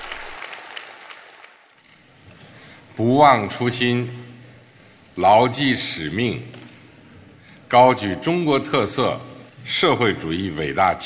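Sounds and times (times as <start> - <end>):
warm applause in a village meeting room: 0.0 - 1.8
speech: 3.0 - 4.2, 5.2 - 6.6, 7.7 - 11.0.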